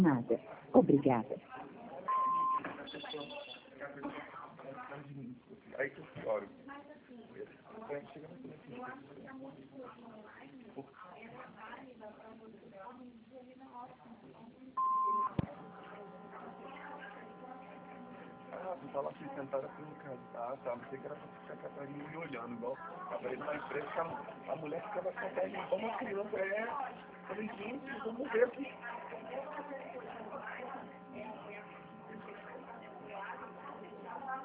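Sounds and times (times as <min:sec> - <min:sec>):
speech: 0:00.0 - 0:01.6, 0:03.0 - 0:11.0, 0:18.7 - 0:31.6
answering machine beep: 0:02.1 - 0:03.7, 0:14.8 - 0:18.6.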